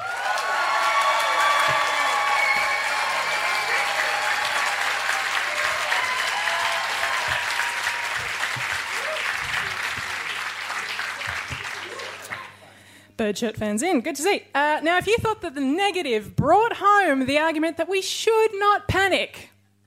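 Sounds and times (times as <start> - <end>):
debate audience clapping: 0.0 - 12.6
speech: 13.2 - 19.5.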